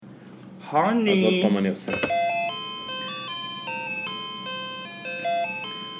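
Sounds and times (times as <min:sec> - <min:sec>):
speech: 0:00.7 - 0:02.2
electronic doorbell melody: 0:02.0 - 0:05.9.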